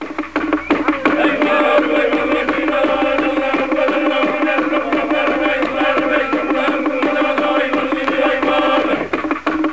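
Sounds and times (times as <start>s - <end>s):
African music: 0.0s - 9.7s.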